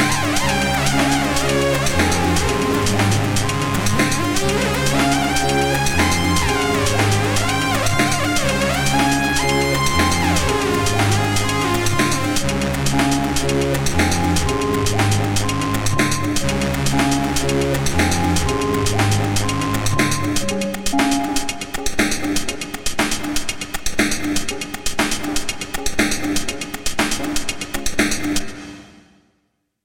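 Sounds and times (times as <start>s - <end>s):
techno train music: 0.0s - 28.7s.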